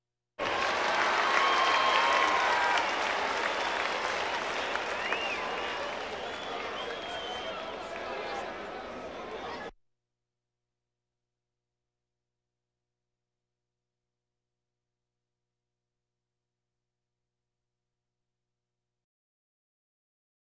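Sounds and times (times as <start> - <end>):
crowds: 0.4 - 9.7.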